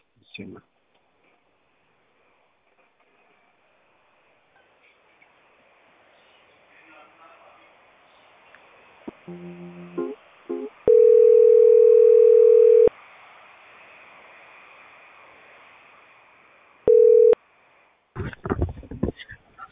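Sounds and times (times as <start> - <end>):
quiet hiss: 0.0 - 19.6
telephone line tone after a call drops in a power outage: 10.9 - 12.9, 16.9 - 17.4.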